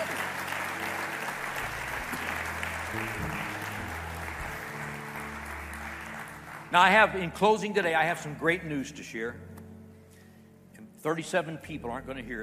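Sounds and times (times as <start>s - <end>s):
large crowd applause: 0.0s - 8.3s
low sustained musical tones: 0.0s - 12.4s
speech: 6.7s - 9.5s, 11.0s - 12.4s.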